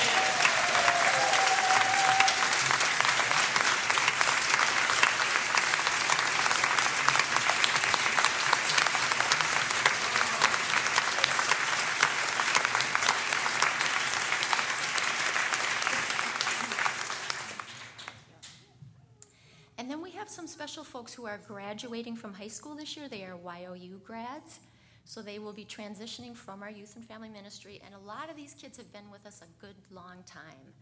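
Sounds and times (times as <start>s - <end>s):
audience applause: 0.0s - 18.3s
speech: 21.2s - 30.8s.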